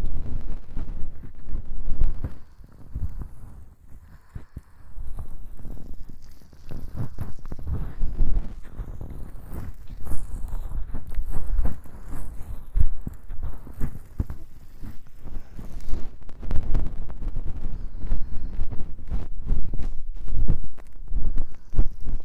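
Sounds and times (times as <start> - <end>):
finger scratching at both ears: 0.6 - 22.2
breathing into both ears: 2.2 - 16.3, 17.5 - 19.2, 20.5 - 22.2.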